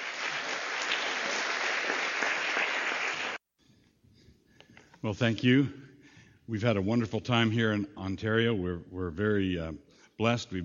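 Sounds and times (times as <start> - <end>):
Westminster audience round of applause: 0.0 - 3.4
speech: 5.0 - 5.8, 6.5 - 10.6.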